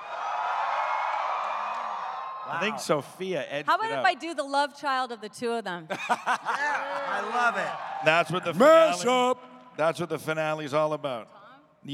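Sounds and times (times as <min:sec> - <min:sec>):
audience screaming and cheering: 0:00.0 - 0:02.9, 0:06.7 - 0:09.0
speech: 0:02.5 - 0:11.9
laughter: 0:05.9 - 0:09.2.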